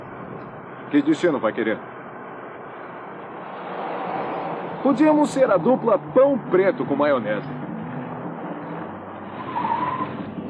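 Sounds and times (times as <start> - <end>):
car engine rumbling: 0.0 - 10.4
speech: 0.9 - 2.0, 4.8 - 7.6
car tires squealing as it skids to a halt: 3.2 - 10.4.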